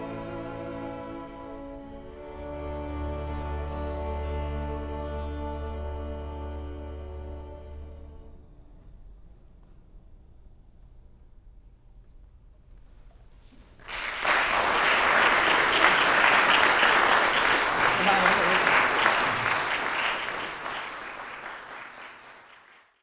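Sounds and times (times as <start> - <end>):
slow lament music: 0.0 - 8.6
laughter: 14.2 - 21.6.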